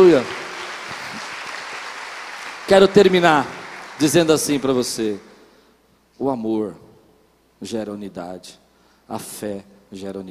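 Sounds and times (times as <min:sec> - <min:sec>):
speech: 0:00.0 - 0:00.4, 0:02.7 - 0:05.3, 0:06.2 - 0:06.8, 0:07.6 - 0:10.2
audience applauding: 0:00.0 - 0:05.3.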